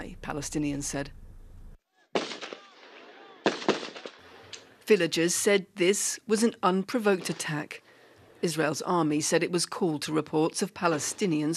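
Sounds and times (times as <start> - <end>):
speech: 0.3 - 1.2, 4.9 - 7.8, 8.4 - 11.5
gunfire from a settlement security guard outside the village of Sa'ir: 2.1 - 4.5.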